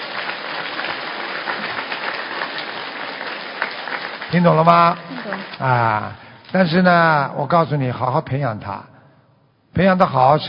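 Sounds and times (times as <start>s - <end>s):
applause: 0.0s - 6.2s
speech: 4.3s - 8.9s, 9.8s - 10.4s.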